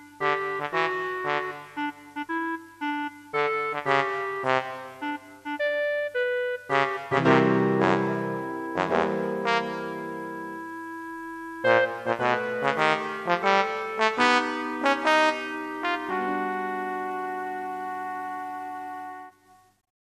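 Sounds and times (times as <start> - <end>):
trombone: 0.2 - 2.6, 3.3 - 5.7, 6.6 - 19.4.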